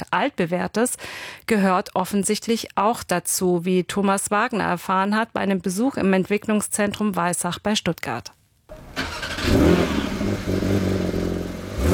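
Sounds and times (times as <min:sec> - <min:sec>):
speech: 0:00.0 - 0:08.4
Porsche 911 engine starting: 0:08.7 - 0:11.9.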